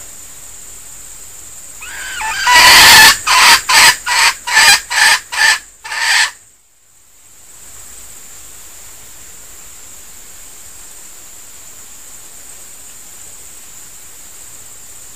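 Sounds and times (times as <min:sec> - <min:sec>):
female junglefowl decoy bird squeaking and clucking: 0:01.8 - 0:06.4.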